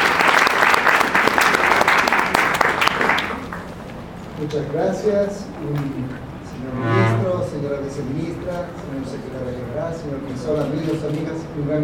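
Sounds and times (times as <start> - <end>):
audience applause: 0.0 - 3.6
speech: 4.5 - 11.8.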